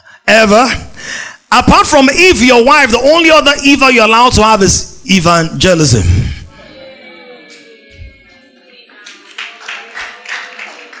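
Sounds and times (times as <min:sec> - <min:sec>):
speech: 0:00.3 - 0:06.4
crowd murmuring: 0:06.5 - 0:10.9
audience clapping: 0:08.9 - 0:10.9.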